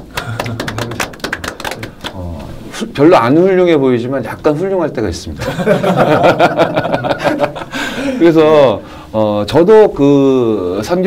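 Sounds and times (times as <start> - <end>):
small group clapping: 0.0 - 2.4
speech: 2.8 - 11.0
laughter: 5.4 - 8.2.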